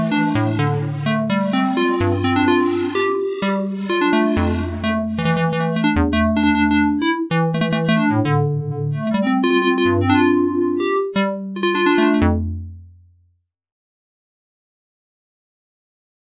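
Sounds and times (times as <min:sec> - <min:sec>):
synth pluck: 0:00.0 - 0:12.7.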